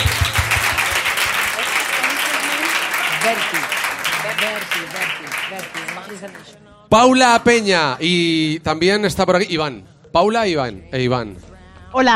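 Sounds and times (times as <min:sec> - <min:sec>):
applause: 0:00.0 - 0:06.6
speech: 0:03.3 - 0:03.7, 0:04.4 - 0:12.1.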